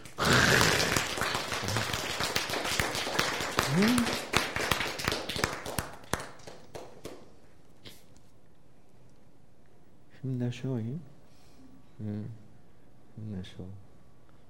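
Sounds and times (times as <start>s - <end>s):
audience clapping: 0.0s - 7.4s
speech: 3.8s - 4.2s, 10.6s - 11.2s, 12.0s - 12.4s, 13.2s - 13.8s.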